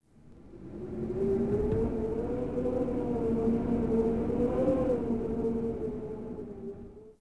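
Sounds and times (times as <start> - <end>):
tundra wind gust: 0.2 - 7.0.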